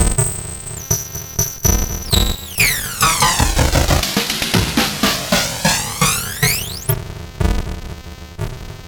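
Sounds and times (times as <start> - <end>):
Game Boy sound samples with FPGA flanging: 0.8 - 7.0.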